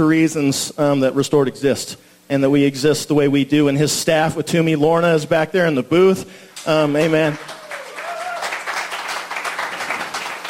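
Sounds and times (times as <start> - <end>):
speech: 0.0 - 7.6
audience applause and clapping: 7.3 - 10.4.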